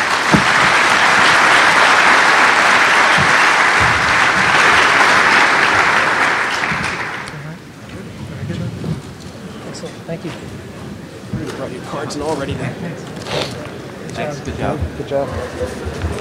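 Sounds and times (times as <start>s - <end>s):
audience applause for panelists: 0.0s - 7.5s
speech: 12.2s - 13.1s, 14.5s - 16.0s.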